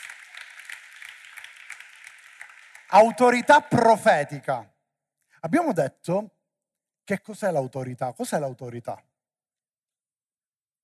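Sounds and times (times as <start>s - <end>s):
audience clapping: 0.0s - 3.9s
speech: 2.9s - 4.7s, 5.4s - 6.4s, 7.1s - 9.1s.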